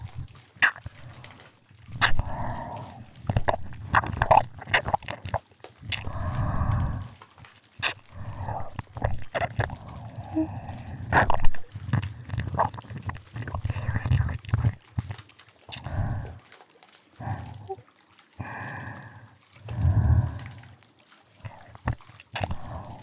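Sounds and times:
foamy bubbling sounds: 0.0s - 16.4s, 21.4s - 23.0s
ear licking: 0.0s - 16.6s, 17.2s - 18.6s, 21.4s - 23.0s.

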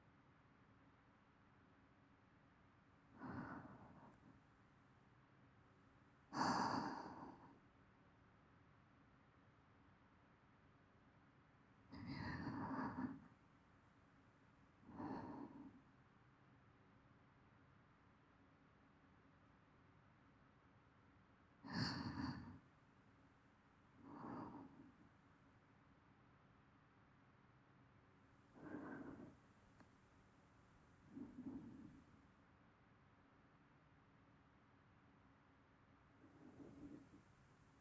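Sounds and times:
person breathing in sleep loop: 3.2s - 4.4s, 6.4s - 7.5s, 12.0s - 13.3s, 14.8s - 15.8s, 21.7s - 22.6s, 24.0s - 25.0s, 28.6s - 32.1s, 36.3s - 37.7s.

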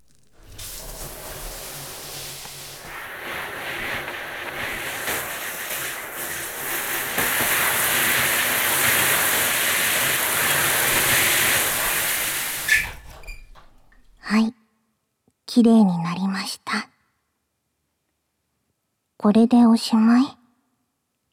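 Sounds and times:
shower water rinsing shampoo foam from hair: 0.0s - 14.2s
speech: 15.6s - 16.1s, 19.3s - 20.4s.

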